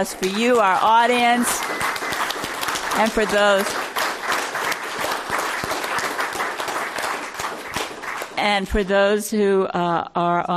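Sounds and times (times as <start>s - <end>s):
speech: 0.0s - 2.0s, 3.0s - 3.8s, 8.4s - 10.5s
audience applause at a Commonwealth Club event: 0.0s - 8.4s.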